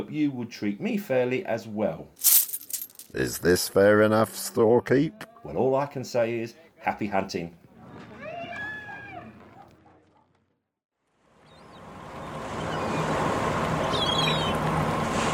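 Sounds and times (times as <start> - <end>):
speech: 0.0 - 2.4, 3.1 - 7.6
cargo boat engine rumble on a river: 11.8 - 15.3.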